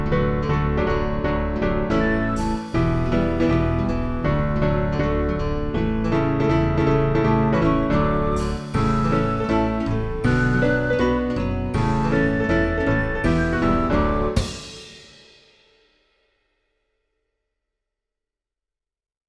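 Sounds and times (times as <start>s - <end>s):
backing track: 0.0s - 15.2s.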